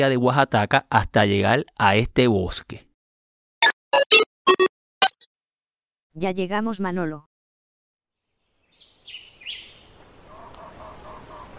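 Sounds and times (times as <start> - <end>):
speech: 0.0 - 2.9, 3.9 - 4.6, 6.2 - 7.3
forest ambience in Oaxaca: 8.2 - 11.5.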